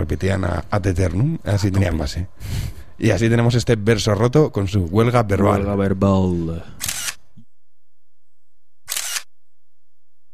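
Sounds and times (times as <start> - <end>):
speech: 0.0 - 6.9
camera shutters clicking as photographers take photos: 6.8 - 7.2, 8.9 - 9.3.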